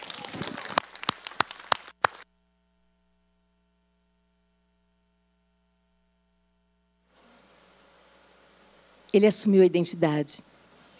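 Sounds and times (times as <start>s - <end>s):
audience applause: 0.0s - 2.2s
speech: 9.2s - 10.5s.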